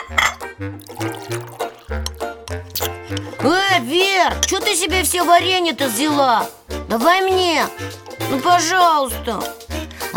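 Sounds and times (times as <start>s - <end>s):
tea pouring into a glass: 0.0s - 3.4s
speech: 0.6s - 9.6s.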